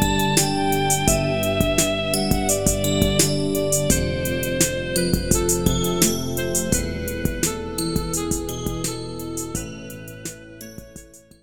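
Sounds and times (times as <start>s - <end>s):
saxophone background music: 0.0s - 11.4s.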